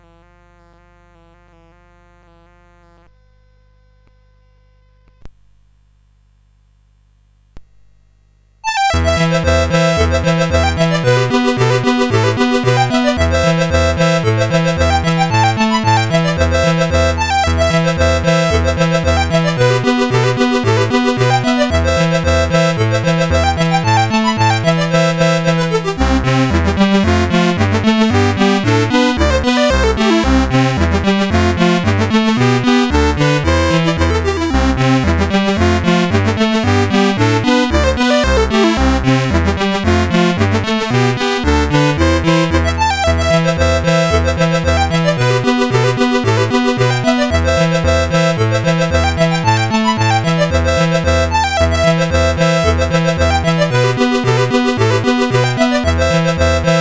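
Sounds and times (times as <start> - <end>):
CSG 8580 sound chip: 8.7 - 56.7.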